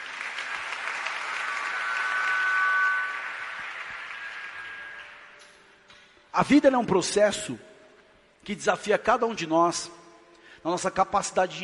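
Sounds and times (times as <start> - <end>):
audience applauding: 0.0 - 5.4
speech: 6.4 - 7.7, 8.5 - 10.0, 10.6 - 11.6.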